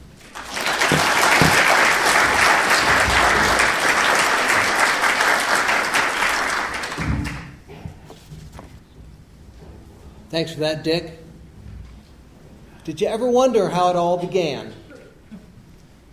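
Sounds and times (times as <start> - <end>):
audience applause welcoming a speaker onto the stage: 0.0 - 7.6
speech: 10.4 - 11.2, 12.8 - 14.8.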